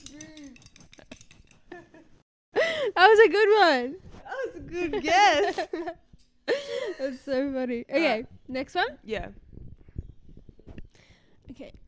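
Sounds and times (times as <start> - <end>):
two spoons struck together as a rhythm instrument: 0.0 - 1.7
speech: 3.0 - 4.0, 4.6 - 6.0, 7.0 - 9.4, 11.6 - 11.8
laughter: 5.0 - 7.0.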